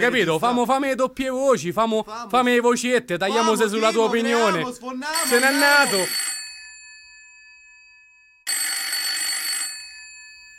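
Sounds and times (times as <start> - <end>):
speech: 0.0 - 6.3
telephone bell ringing: 4.3 - 10.5.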